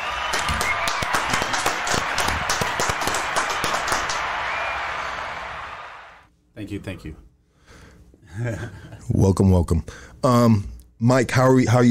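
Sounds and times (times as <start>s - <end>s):
audience applause welcoming a podcast guest: 0.0s - 6.3s
speech: 6.6s - 7.3s, 8.4s - 11.8s.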